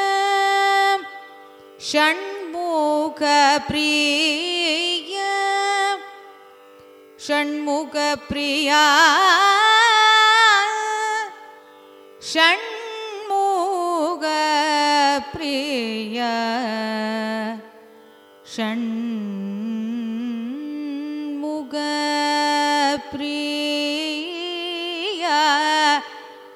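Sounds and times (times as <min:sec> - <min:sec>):
carnatic music raga phrases: 0:00.0 - 0:26.5.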